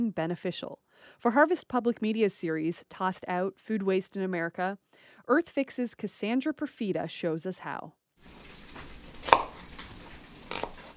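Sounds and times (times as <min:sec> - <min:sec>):
speech: 0:00.1 - 0:08.5
knife chopping vegetables in a home kitchen in Portland, Oregon, for tofu stir fry: 0:08.8 - 0:10.9.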